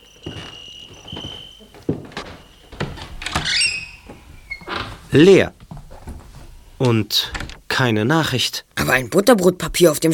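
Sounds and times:
high insect chirping: 0.0 - 4.7
door creaking open as people enter: 0.0 - 6.2, 6.8 - 7.7
footsteps: 0.0 - 7.0
speech: 5.1 - 5.6, 6.8 - 10.1.

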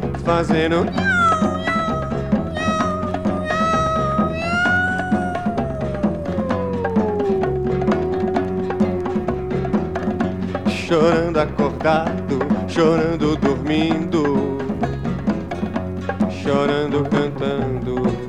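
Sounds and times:
busy instrumental music: 0.0 - 18.2
speech: 0.2 - 1.5, 10.9 - 14.4, 16.5 - 18.2
cat meowing: 0.8 - 12.1.

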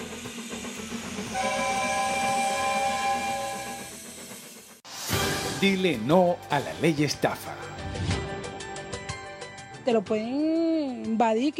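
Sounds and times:
train rolling with steady low rumble: 0.0 - 7.8
steam train whistle: 1.0 - 4.3
speech: 5.6 - 7.6, 9.8 - 11.5.

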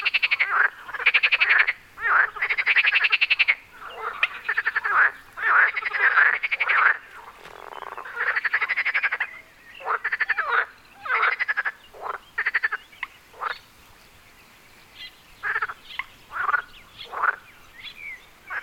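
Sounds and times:
frog calls at Wyspa Sobieszewska in Gdańsk, Poland: 0.0 - 13.7, 15.4 - 18.6.

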